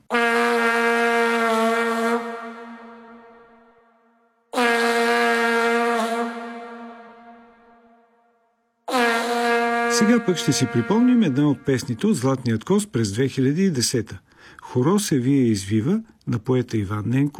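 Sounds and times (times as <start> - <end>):
vuvuzela blasts: 0.0 - 8.2, 8.9 - 12.3
speech: 10.0 - 17.3.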